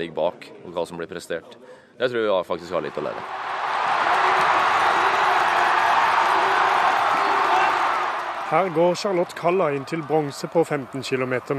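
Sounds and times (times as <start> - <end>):
speech: 0.0 - 3.5, 8.5 - 11.5
home crowd cheering at ski race in Falun: 2.8 - 11.5.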